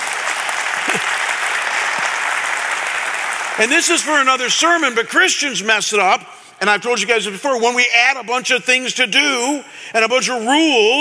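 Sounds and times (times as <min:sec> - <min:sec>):
audience applause: 0:00.0 - 0:04.3
speech: 0:03.6 - 0:11.0.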